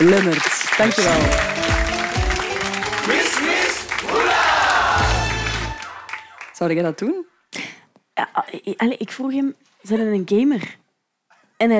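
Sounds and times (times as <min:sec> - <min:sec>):
speech: 0:00.0 - 0:01.7, 0:06.6 - 0:07.3, 0:08.2 - 0:10.8, 0:11.6 - 0:11.7
applause: 0:00.0 - 0:06.8.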